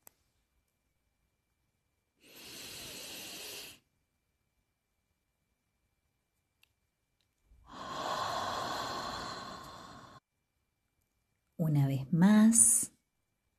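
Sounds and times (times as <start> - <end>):
long exhalation through the mouth in a guided breathing exercise: 2.2 - 3.8, 7.7 - 10.2
slow inhalation through the nose in a guided breathing exercise: 2.2 - 3.8, 7.7 - 10.2
speech: 11.7 - 12.9.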